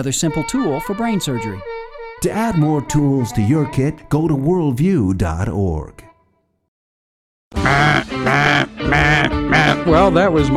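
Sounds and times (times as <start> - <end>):
speech: 0.0 - 6.1, 7.5 - 10.5
cheap duck call honks: 7.6 - 10.0.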